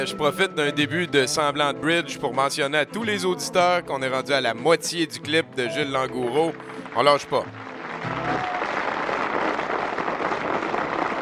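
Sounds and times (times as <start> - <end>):
speech: 0.0 - 8.5
audience applause after a song: 5.7 - 11.2.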